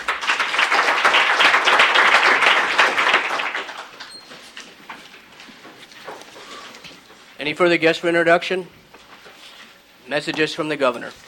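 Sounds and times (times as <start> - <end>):
applause in a legislative chamber welcoming a guest: 0.0 - 4.1
speech: 7.4 - 8.8, 10.1 - 11.2.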